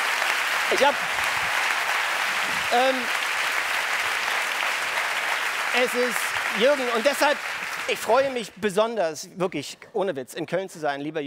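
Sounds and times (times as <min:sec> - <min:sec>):
audience applause: 0:00.0 - 0:08.5
speech: 0:00.7 - 0:01.3, 0:02.5 - 0:03.2, 0:05.7 - 0:11.2.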